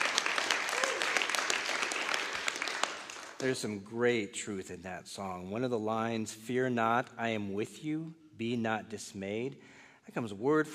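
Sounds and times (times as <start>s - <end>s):
audience clapping after a song: 0.0s - 3.8s
speech: 3.4s - 10.7s.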